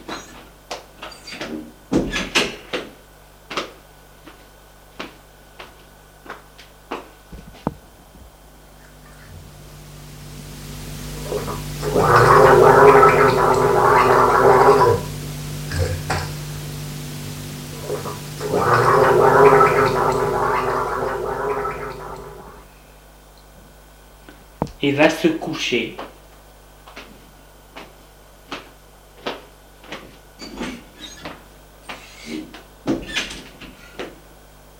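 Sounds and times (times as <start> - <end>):
shower running: 8.8 - 22.7
speech: 24.9 - 26.0.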